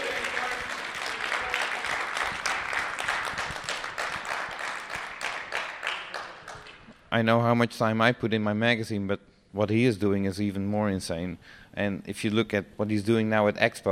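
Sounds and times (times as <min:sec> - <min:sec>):
audience applause: 0:00.0 - 0:06.9
speech: 0:07.1 - 0:13.9.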